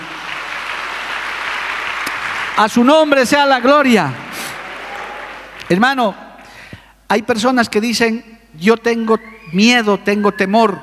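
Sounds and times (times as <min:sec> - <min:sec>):
audience applauding: 0:00.0 - 0:05.8
speech: 0:02.6 - 0:04.2, 0:05.7 - 0:06.2, 0:07.1 - 0:10.8.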